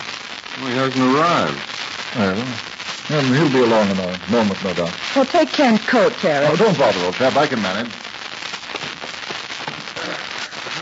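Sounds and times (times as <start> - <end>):
fire crackling in a fireplace: 0.0 - 10.8
speech: 0.6 - 8.0.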